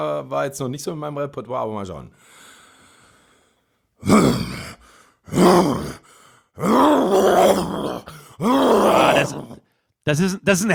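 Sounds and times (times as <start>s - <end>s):
speech: 0.0s - 2.4s, 4.0s - 4.6s, 5.3s - 6.0s, 6.6s - 10.7s
breathing: 2.1s - 5.3s, 5.9s - 6.6s, 8.1s - 8.4s, 9.6s - 10.0s
person imitating a lion's roar: 4.0s - 6.0s, 6.6s - 9.6s.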